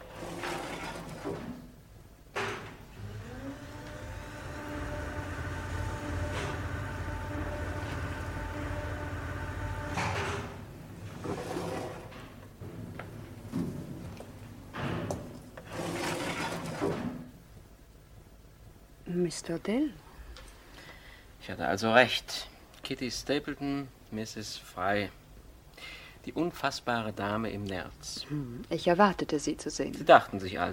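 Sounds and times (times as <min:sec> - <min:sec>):
elevator running: 0:00.0 - 0:17.3
speech: 0:19.2 - 0:20.0, 0:21.5 - 0:25.2, 0:26.2 - 0:30.7.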